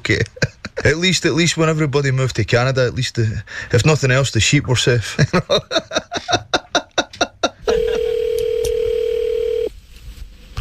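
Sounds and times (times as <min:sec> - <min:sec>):
speech: 0:00.0 - 0:06.4
laughter: 0:05.2 - 0:08.2
telephone dialing pulses: 0:07.8 - 0:09.7.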